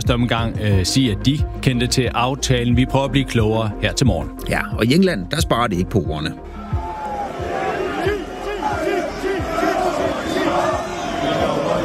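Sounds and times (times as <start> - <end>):
speech: 0.0 - 6.5
football fans chanting and shouting: 6.6 - 11.8.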